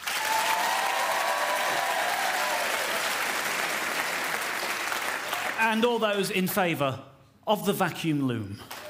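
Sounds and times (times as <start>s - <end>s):
audience applause voting for a contestant: 0.0s - 5.6s, 8.7s - 8.8s
speech: 5.6s - 8.8s.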